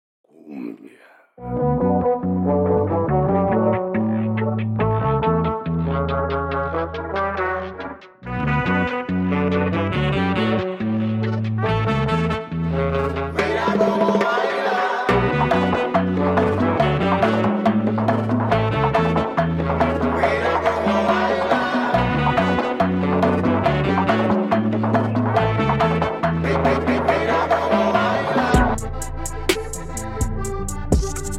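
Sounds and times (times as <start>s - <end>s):
cumbia music: 1.6s - 31.3s.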